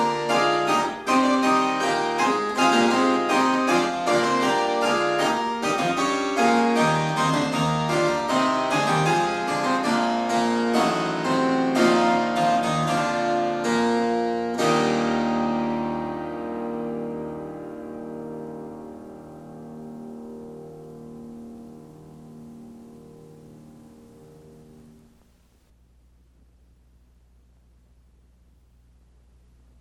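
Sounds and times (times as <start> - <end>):
fugue: 0.0 - 21.0.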